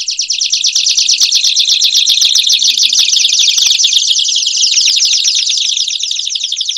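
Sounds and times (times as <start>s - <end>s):
two canaries singing: 0.0s - 6.7s.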